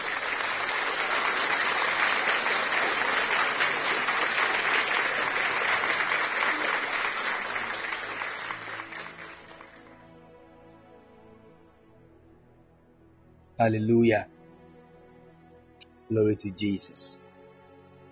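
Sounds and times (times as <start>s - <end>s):
audience clapping hands: 0.0s - 10.0s
speech: 13.6s - 14.4s, 16.1s - 17.2s.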